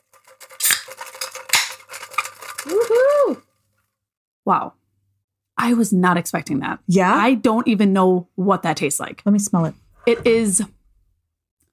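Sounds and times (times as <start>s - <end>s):
ice cubes rattling inside a shaken water bottle: 0.0s - 3.7s
speech: 4.5s - 4.8s, 5.6s - 10.8s.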